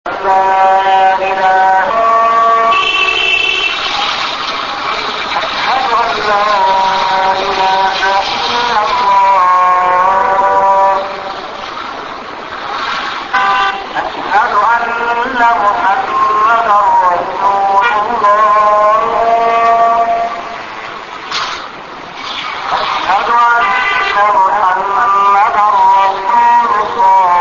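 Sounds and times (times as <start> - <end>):
azan call to prayer in Beirut: 0.1 - 11.6, 13.3 - 21.0, 22.7 - 27.3.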